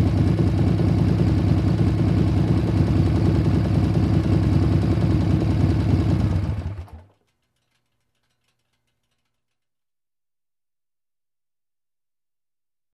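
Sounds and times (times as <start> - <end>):
motorcycle approaching and turning off: 0.0 - 7.0.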